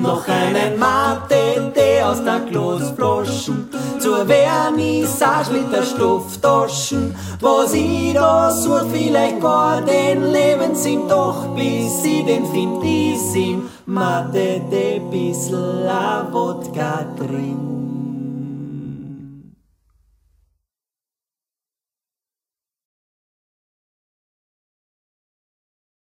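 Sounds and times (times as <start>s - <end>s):
vocal ensemble singing: 0.0s - 19.6s.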